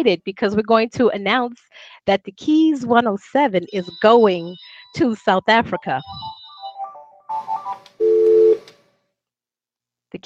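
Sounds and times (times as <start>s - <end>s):
speech: 0.0s - 6.4s
office telephone ringing electronically: 3.6s - 8.7s.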